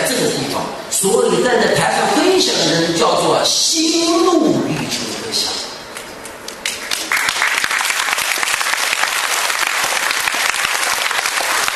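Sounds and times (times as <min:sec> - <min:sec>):
speech: 0:01.0 - 0:04.7
audience applause: 0:06.6 - 0:11.7.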